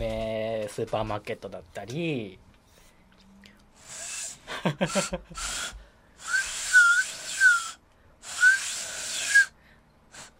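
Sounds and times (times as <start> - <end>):
speech: 0.8 - 2.5, 4.7 - 5.8
laughter: 4.5 - 5.4
handmade whistle with changing pitch blown: 5.0 - 9.6.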